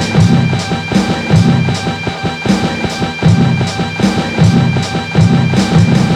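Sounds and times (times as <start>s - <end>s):
music loop: 0.0s - 6.1s.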